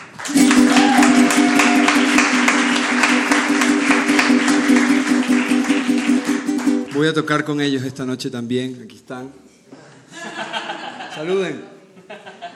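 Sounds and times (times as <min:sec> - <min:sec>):
crowd loud sustained applause: 0:00.0 - 0:07.3
speech: 0:07.0 - 0:09.4, 0:11.2 - 0:12.2.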